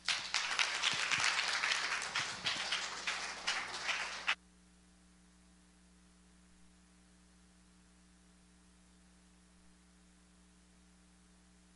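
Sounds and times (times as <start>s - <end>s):
crowd applause welcoming a speaker: 0.0s - 4.4s.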